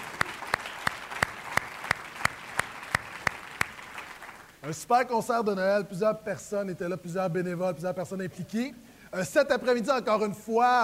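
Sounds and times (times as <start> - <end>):
audience applause: 0.0 - 4.6
speech: 4.6 - 10.8.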